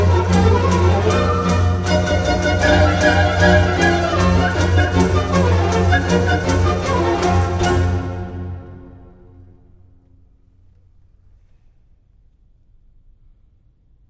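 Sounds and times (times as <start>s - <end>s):
French baroque aria: 0.0s - 9.5s.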